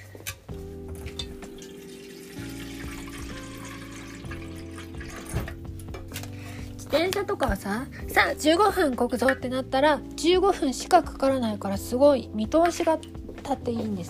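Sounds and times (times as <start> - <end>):
pouring water: 1.0 - 5.8
speech: 6.9 - 14.0.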